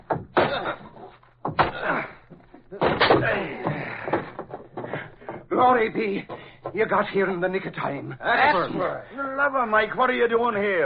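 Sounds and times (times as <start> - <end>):
closet door being broken open: 0.0 - 4.8
speech: 5.6 - 10.8.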